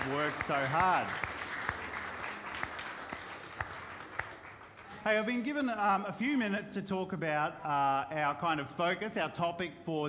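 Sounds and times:
audience applause: 0.0s - 5.3s
speech: 0.1s - 1.3s, 5.0s - 10.0s.

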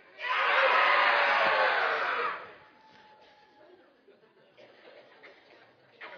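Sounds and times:
group of children shouting: 0.1s - 2.6s.

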